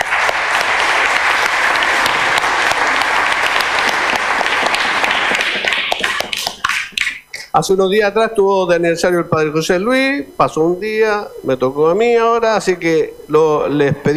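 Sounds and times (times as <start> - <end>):
audience applause: 0.0 - 7.2
speech: 7.6 - 14.1.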